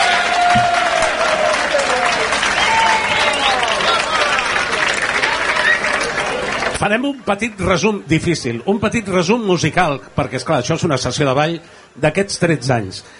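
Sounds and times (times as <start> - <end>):
audience applause: 0.0 - 7.8
speech: 6.8 - 13.1.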